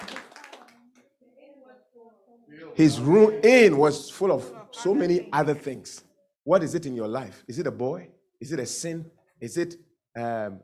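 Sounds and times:
audience clapping: 0.0 - 1.0
speech: 2.1 - 10.6.

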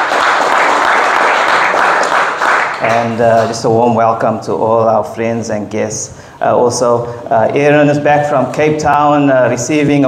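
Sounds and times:
church congregation applause: 0.0 - 3.5
speech: 2.8 - 10.0.

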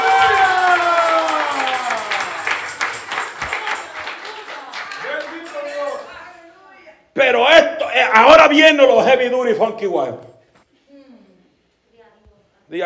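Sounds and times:
shouts of praise: 0.0 - 6.2
audience applause: 0.0 - 6.3
speech: 8.2 - 10.3.

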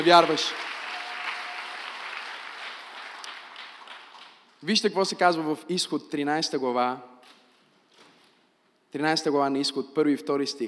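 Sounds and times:
speech: 0.0 - 0.7, 4.6 - 7.4, 8.9 - 10.6
audience applauding: 0.0 - 4.5.

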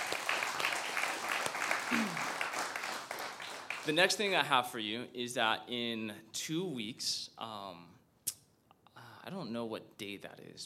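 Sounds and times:
audience applause: 0.0 - 4.4
speech: 1.9 - 2.2, 3.9 - 8.0, 9.3 - 10.6.

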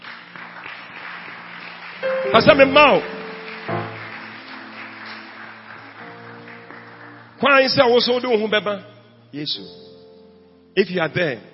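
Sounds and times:
audience clapping: 0.0 - 7.8
speech: 2.0 - 3.8, 7.4 - 9.8, 10.8 - 11.5.

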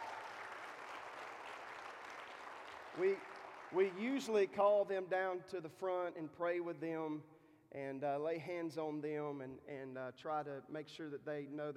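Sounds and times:
audience applause: 0.0 - 4.0
speech: 3.0 - 11.7.

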